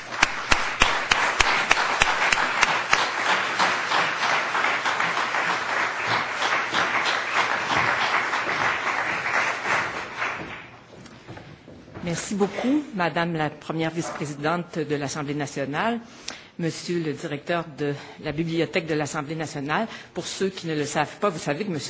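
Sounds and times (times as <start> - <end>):
audience applause welcoming a speaker at a National Assembly library event: 0.0 - 10.9
speech: 12.1 - 21.8.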